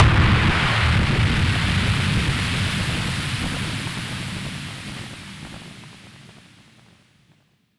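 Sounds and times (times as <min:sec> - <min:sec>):
noise bomb burst: 0:00.0 - 0:03.8.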